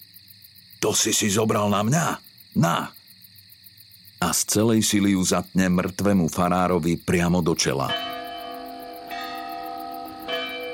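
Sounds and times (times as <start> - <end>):
speech: 0.8 - 3.0, 4.2 - 8.1
tower clock bell striking: 7.8 - 10.7.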